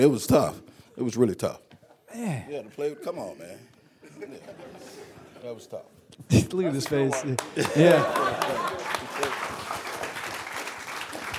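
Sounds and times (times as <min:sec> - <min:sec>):
speech: 0:00.0 - 0:09.9
laughter: 0:04.0 - 0:09.8
audience clapping: 0:06.7 - 0:11.3.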